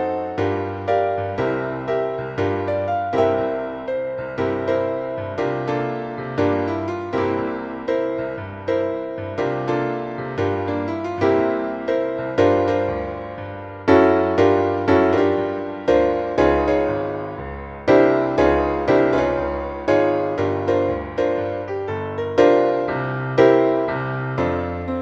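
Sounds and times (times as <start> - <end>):
piano note Eb: 0.0 - 24.9.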